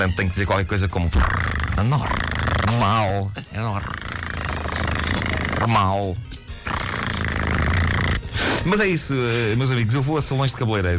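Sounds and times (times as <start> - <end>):
speech: 0.0 - 4.0, 5.6 - 6.3, 8.6 - 10.9
man imitating a cat purring: 1.0 - 8.4.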